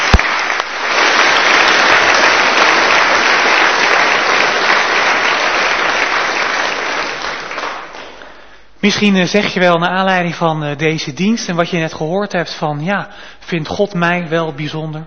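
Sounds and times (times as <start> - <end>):
audience applause: 0.0 - 8.4
speech: 8.8 - 15.0.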